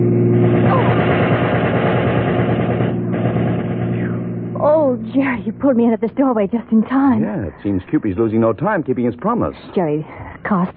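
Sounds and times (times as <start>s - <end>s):
machine gun fire from a passing car: 0.4s - 4.6s
speech: 5.0s - 10.7s.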